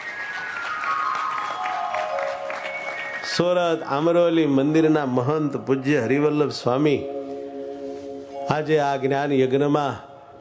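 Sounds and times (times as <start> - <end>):
crowd clapping at a religious gathering during a knowledge yajna: 0.0 - 4.2
speech: 3.2 - 7.2, 8.5 - 10.3.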